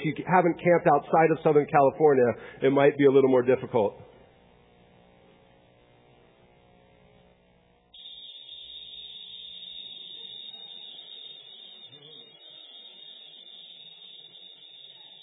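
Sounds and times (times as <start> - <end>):
speech: 0.0 - 4.1
cicadas buzzing: 8.0 - 15.2.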